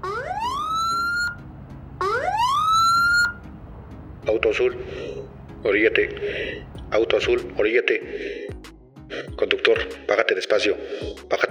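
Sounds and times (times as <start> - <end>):
police car siren wailing: 0.0 - 3.4
speech: 4.2 - 8.5, 9.1 - 11.4.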